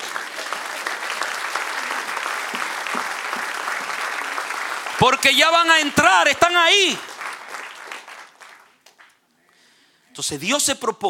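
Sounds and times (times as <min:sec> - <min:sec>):
crowd applauding: 0:00.0 - 0:09.2
speech: 0:05.0 - 0:07.1, 0:10.2 - 0:11.0.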